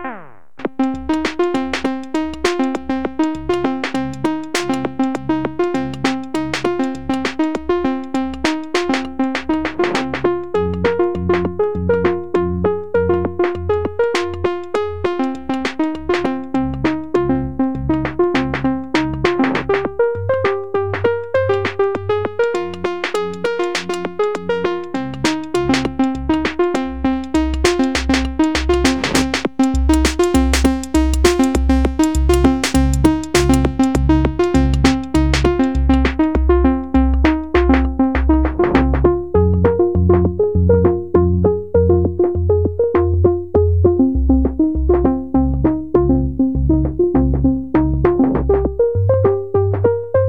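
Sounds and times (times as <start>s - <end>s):
cave music noise: 0.6s - 50.2s.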